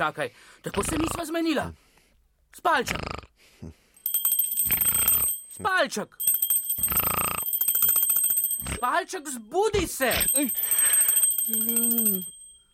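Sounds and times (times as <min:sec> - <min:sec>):
speech: 0:00.0 - 0:01.8, 0:02.5 - 0:03.8, 0:05.6 - 0:07.0, 0:08.8 - 0:12.4
small bell ringing: 0:04.0 - 0:12.7.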